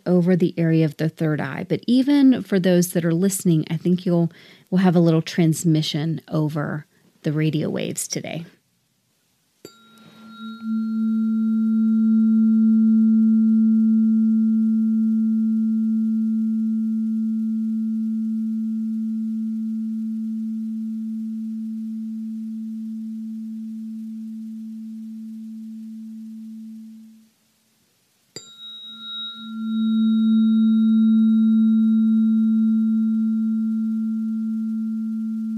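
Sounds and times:
speech: 0:00.1 - 0:08.6
tuning fork struck and ringing a low pure tone: 0:09.6 - 0:27.3, 0:28.4 - 0:35.5.

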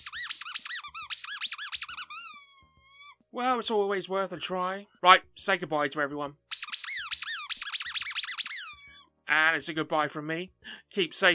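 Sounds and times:
speech: 0:00.0 - 0:00.2, 0:03.3 - 0:06.4, 0:09.3 - 0:11.3
rubber duck squeaking: 0:00.0 - 0:03.3, 0:06.5 - 0:09.2.

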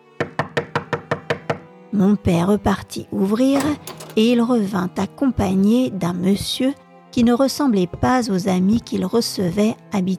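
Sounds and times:
knocking on a door: 0:00.2 - 0:01.7
speech: 0:01.9 - 0:10.1.

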